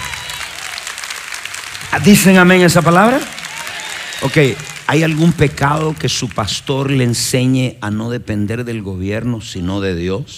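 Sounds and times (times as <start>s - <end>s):
applause: 0.0s - 7.6s
speech: 2.0s - 3.4s, 4.2s - 10.3s.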